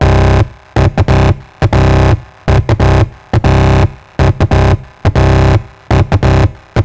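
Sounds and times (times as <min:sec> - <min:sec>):
trance bass loop at 140 bpm: 0:00.0 - 0:06.8.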